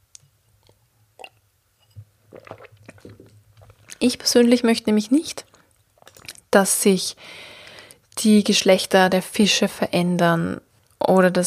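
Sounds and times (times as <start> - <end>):
person taking a quick drink: 0.6 - 4.2, 5.4 - 6.5
speech: 4.0 - 5.5, 6.5 - 7.5, 8.2 - 11.4.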